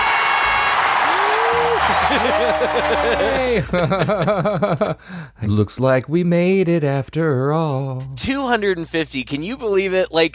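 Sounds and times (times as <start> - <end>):
fake applause sound effect: 0.0 - 3.7
laughter: 0.9 - 5.0
speech: 2.1 - 10.3.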